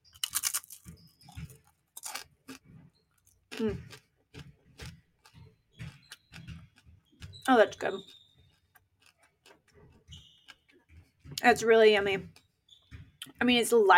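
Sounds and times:
biting and chewing a light seed cracker: 0.0s - 7.4s, 8.0s - 9.7s
speech: 3.6s - 4.0s, 7.5s - 8.2s, 11.4s - 12.4s, 13.4s - 13.9s.

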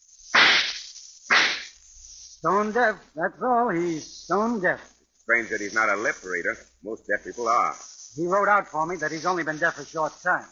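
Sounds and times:
gunshots fired behind a man: 0.4s - 1.7s
speech: 2.4s - 10.5s.

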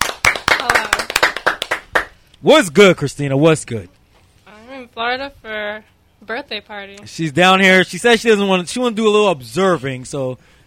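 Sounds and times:
hand clapping: 0.0s - 2.2s
speech: 2.4s - 4.0s, 4.9s - 10.5s.

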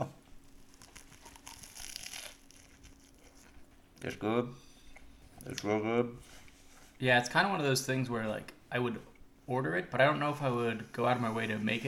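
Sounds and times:
crunchy bite of food on the mic: 0.7s - 3.6s
speech: 4.0s - 4.7s, 5.4s - 6.4s, 7.0s - 11.8s.

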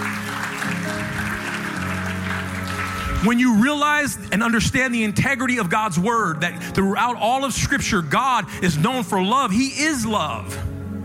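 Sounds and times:
audience clapping: 0.0s - 4.0s
speech: 3.2s - 10.7s.

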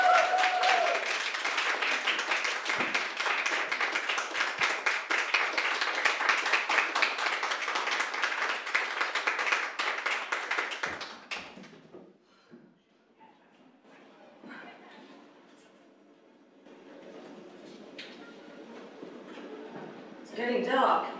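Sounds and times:
audience applause as a band is welcomed to the stage: 0.0s - 11.8s.

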